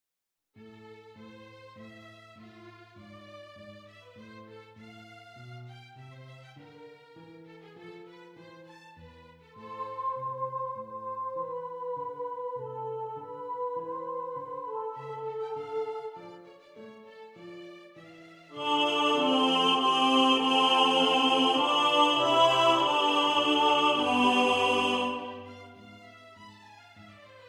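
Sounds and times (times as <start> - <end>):
tenor singing: 9.7 - 16.2, 18.6 - 25.8.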